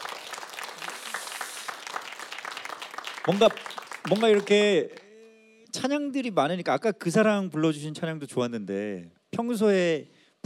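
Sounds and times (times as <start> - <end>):
crowd applauding: 0.0 - 5.2
speech: 3.2 - 5.0, 5.8 - 10.4.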